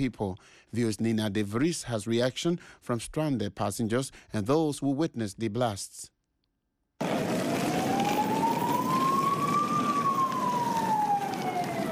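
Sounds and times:
speech: 0:00.0 - 0:06.1
emergency vehicle sirens wailing on city streets of Brussels: 0:07.0 - 0:11.9.

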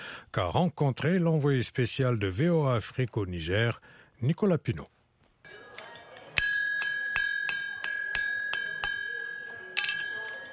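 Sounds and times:
speech: 0:00.4 - 0:05.0
blacksmith hammering hot iron: 0:06.4 - 0:10.5.

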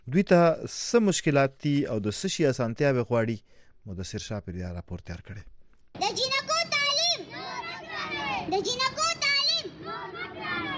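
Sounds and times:
speech: 0:00.1 - 0:06.2, 0:08.5 - 0:09.1
children, mostly girls, chanting slogans at a protest outside the Peshawar Press Club: 0:06.0 - 0:10.7.

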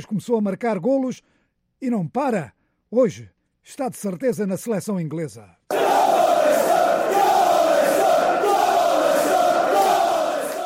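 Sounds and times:
speech: 0:00.0 - 0:05.8
football fans chanting: 0:05.7 - 0:10.6.

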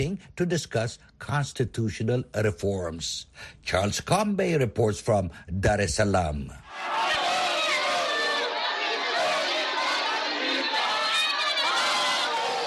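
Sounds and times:
speech: 0:00.0 - 0:07.2
Chadema party supporters shouting and cheering outside a corruption court in Tanzania: 0:06.6 - 0:12.6.

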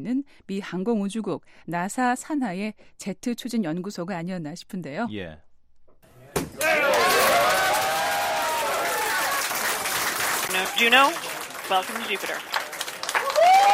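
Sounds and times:
speech: 0:00.0 - 0:05.5, 0:10.5 - 0:12.6
scientists applauding in control room: 0:06.6 - 0:13.7
scientists cheering in control room: 0:06.6 - 0:13.7.

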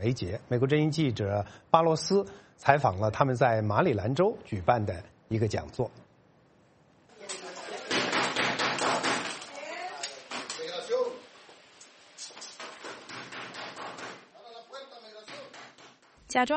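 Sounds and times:
speech: 0:00.0 - 0:06.0, 0:16.3 - 0:16.5
loud knocking on a door: 0:07.9 - 0:09.4, 0:12.6 - 0:14.3, 0:15.2 - 0:16.1.

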